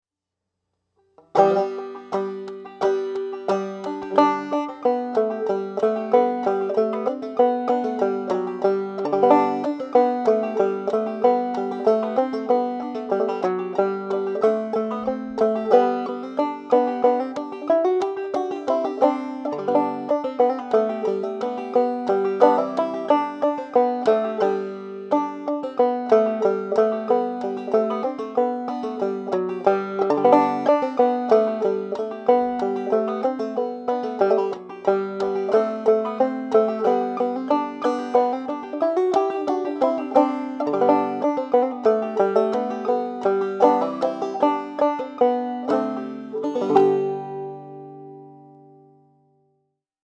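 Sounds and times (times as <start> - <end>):
fast banjo: 1.2 - 49.0.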